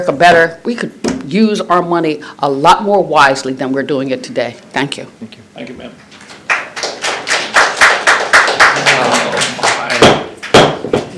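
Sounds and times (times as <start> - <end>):
speech: 0.0 - 6.1
crowd clapping at a public hearing: 6.4 - 10.6.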